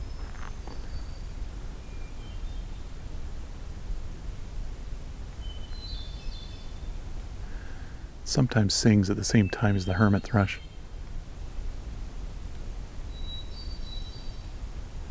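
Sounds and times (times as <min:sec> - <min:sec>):
magnolia warbler song: 0:00.0 - 0:03.0, 0:05.4 - 0:07.0, 0:08.3 - 0:11.0, 0:13.0 - 0:14.6
speech: 0:08.3 - 0:10.7.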